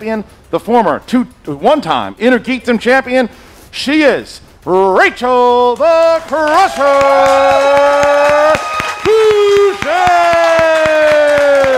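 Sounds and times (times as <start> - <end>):
speech: 0.0 - 10.3
audience applauding: 5.6 - 11.7.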